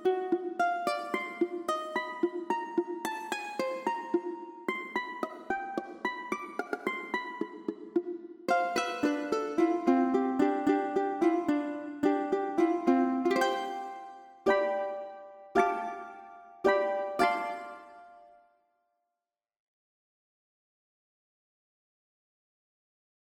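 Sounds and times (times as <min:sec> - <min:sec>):
solo ukulele sonatina: 0:00.0 - 0:18.5.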